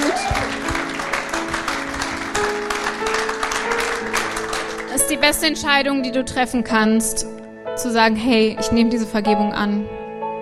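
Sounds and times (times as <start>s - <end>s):
audience applause: 0.0s - 5.2s
speech: 5.2s - 10.0s.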